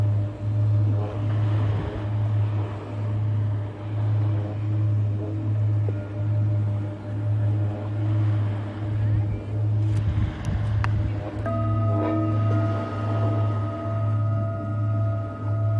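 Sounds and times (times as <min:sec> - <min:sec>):
singing bowls ringing in a sound healing session: 0:00.0 - 0:15.7.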